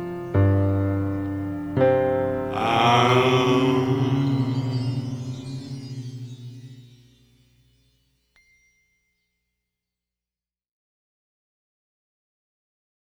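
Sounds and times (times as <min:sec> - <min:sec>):
choir humming a song: 0:00.0 - 0:07.1.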